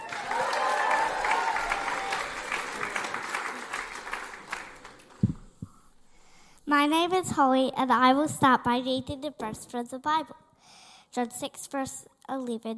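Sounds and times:
audience applause welcoming a child speaker: 0.0s - 5.6s
speech: 6.7s - 10.4s, 11.2s - 12.7s.

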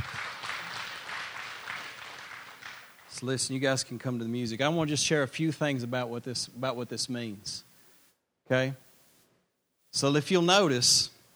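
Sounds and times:
hand clapping: 0.0s - 4.1s
speech: 3.2s - 7.7s, 8.5s - 8.8s, 10.0s - 11.2s.

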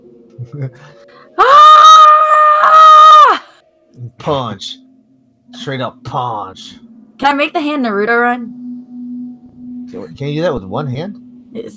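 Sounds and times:
speech: 0.4s - 1.7s, 4.0s - 4.8s, 5.5s - 8.6s, 9.9s - 11.7s
high-pitched anime-style vocal scream: 1.4s - 3.6s.

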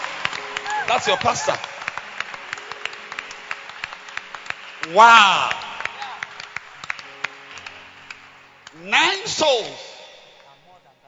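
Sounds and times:
scattered clapping: 0.0s - 8.8s
group clapping hands in rhythm: 0.0s - 10.7s
speech: 0.9s - 1.7s, 4.9s - 5.6s, 8.8s - 9.8s.

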